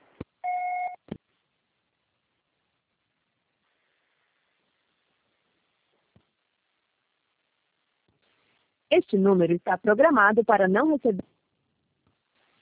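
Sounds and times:
telephone beep after an automated operator recording: 0.4 - 1.0
faint hiss: 1.2 - 9.4, 11.3 - 12.6
speech: 9.0 - 11.3.

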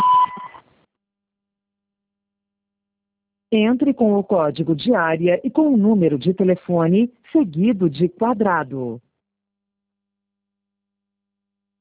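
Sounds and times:
answering machine beep tone: 0.0 - 0.6
speech: 3.5 - 9.0.

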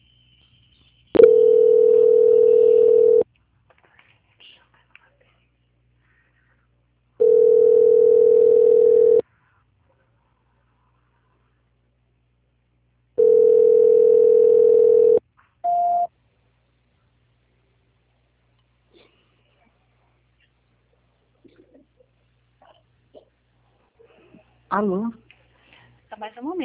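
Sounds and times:
telephone line tone during a call transfer: 1.2 - 3.2, 7.2 - 9.2, 13.2 - 16.1
speech: 24.8 - 25.2, 26.2 - 26.6.

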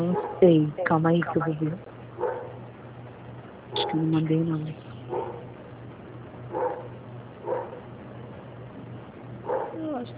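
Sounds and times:
dog barking: 0.1 - 0.4, 2.2 - 2.6, 5.1 - 5.5, 6.5 - 7.9, 9.4 - 9.8
speech: 0.4 - 1.9, 3.9 - 4.9.

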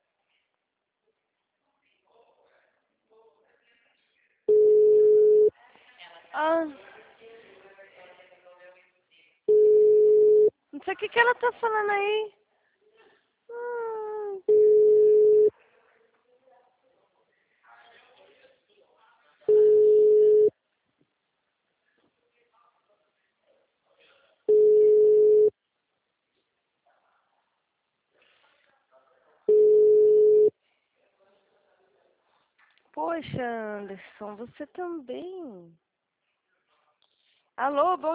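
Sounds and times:
telephone ringback tone from an unanswered call: 4.5 - 5.5, 9.5 - 10.5, 14.5 - 15.5, 19.5 - 20.5, 24.5 - 25.5, 29.5 - 30.5
speech: 6.4 - 6.9, 11.0 - 12.4, 33.2 - 35.9, 37.6 - 38.1.

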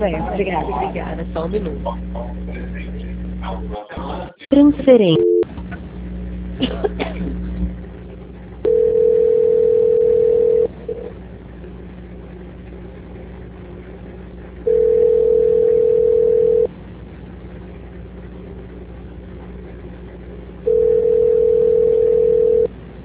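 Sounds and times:
speech: 0.0 - 2.7, 3.4 - 5.4, 6.6 - 7.4
telephone tone while a call is transferred: 5.1 - 5.4, 8.7 - 10.7, 14.7 - 16.7, 20.7 - 22.7.

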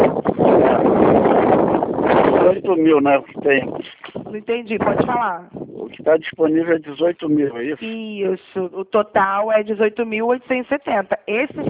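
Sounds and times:
wind blowing into a phone microphone during a call: 0.0 - 8.1, 11.2 - 11.6
speech: 2.7 - 11.6.

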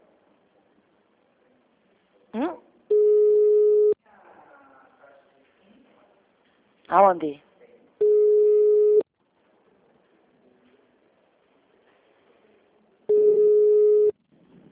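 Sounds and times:
faint low murmur: 0.0 - 14.7
speech: 2.3 - 2.6, 7.0 - 7.5
telephone busy signal: 2.9 - 4.0, 8.0 - 9.0, 13.1 - 14.1.

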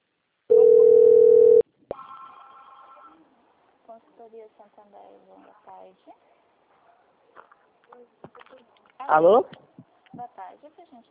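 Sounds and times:
telephone line tone: 0.5 - 3.2
speech: 4.2 - 6.4, 7.9 - 9.6, 10.2 - 11.0.

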